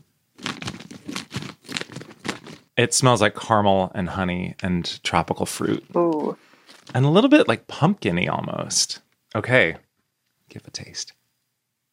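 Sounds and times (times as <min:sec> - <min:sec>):
vacuum sealed food package being opened: 0:00.4 - 0:02.7, 0:06.6 - 0:07.0
speech: 0:02.8 - 0:09.8, 0:10.5 - 0:11.2.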